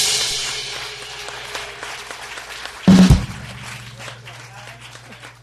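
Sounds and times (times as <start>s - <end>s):
audience applause for the host: 0.1s - 5.4s.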